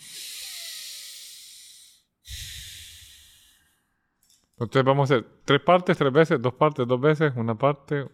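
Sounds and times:
exhaling through the nose during a breathing exercise: 0.0 - 3.8
speech: 4.6 - 8.1.

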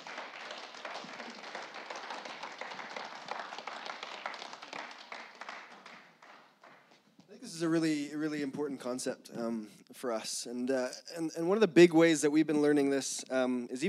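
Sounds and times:
audience clapping: 0.0 - 7.3
speech: 7.6 - 13.8.

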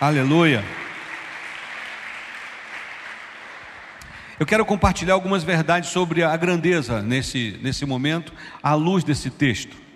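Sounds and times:
speech: 0.0 - 0.8, 4.4 - 9.8
audience applause: 0.0 - 4.7.

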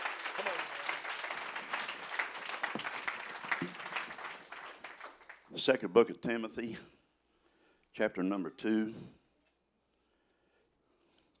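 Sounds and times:
audience clapping hands: 0.0 - 5.5
speech: 5.5 - 7.0, 8.0 - 9.2.

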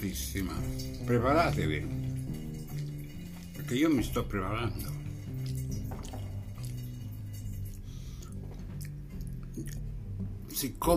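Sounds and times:
speech: 0.0 - 2.1, 3.7 - 5.0, 10.6 - 10.9
person chewing while eating lunch: 5.3 - 10.0.

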